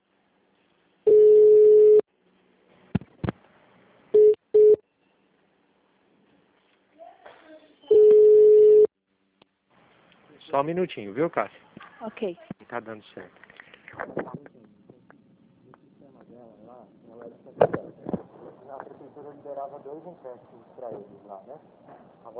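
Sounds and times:
telephone beeps and tones while a call is transferred: 1.1s - 2.1s, 7.9s - 8.9s
speech: 10.5s - 14.5s, 16.8s - 22.3s.

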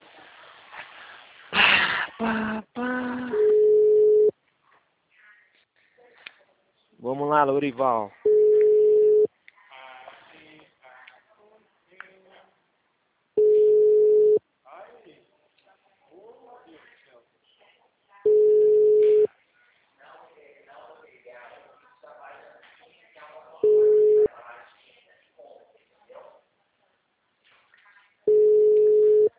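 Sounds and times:
speech: 2.2s - 2.8s, 7.4s - 8.2s
telephone call tone while dialing: 3.3s - 4.3s, 8.3s - 9.3s, 13.4s - 14.4s, 18.3s - 19.3s, 23.6s - 24.3s, 28.3s - 29.3s.

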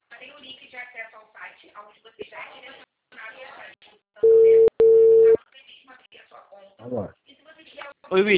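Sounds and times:
speech: 0.7s - 4.6s, 6.6s - 7.2s, 8.1s - 8.3s
telephone busy signal after a dropped call: 4.2s - 5.4s.

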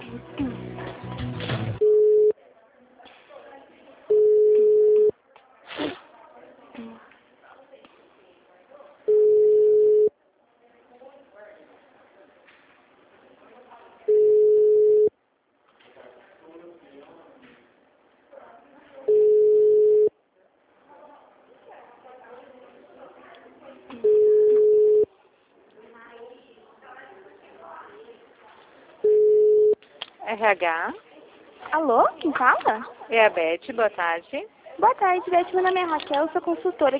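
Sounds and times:
telephone line tone while a call to a bank's HR department is transferred: 1.8s - 2.3s, 4.1s - 5.1s, 9.1s - 10.1s, 14.1s - 15.1s, 19.1s - 20.1s, 24.0s - 25.1s, 29.0s - 29.8s
speech: 30.4s - 31.1s, 31.7s - 36.9s.

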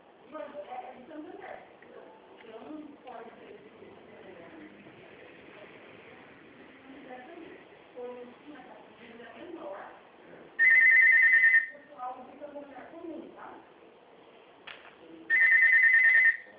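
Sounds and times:
telephone ringing: 10.6s - 11.9s, 15.3s - 16.5s.

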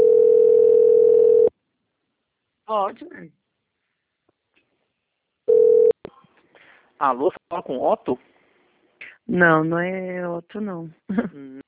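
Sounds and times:
telephone dial tone: 0.0s - 1.5s, 5.5s - 6.0s
speech: 2.8s - 3.4s, 7.0s - 8.3s, 9.3s - 11.6s.

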